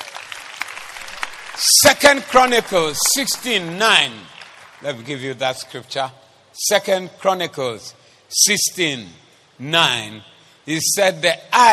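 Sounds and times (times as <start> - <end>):
audience clapping: 0.0 - 5.7
speech: 1.6 - 11.7.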